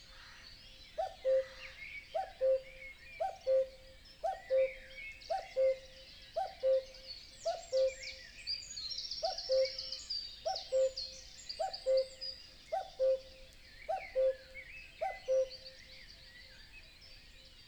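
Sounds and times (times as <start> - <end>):
Common Cuckoo song in a European wetland: 2.2 - 8.0, 9.3 - 9.8, 10.5 - 11.0, 12.8 - 15.6.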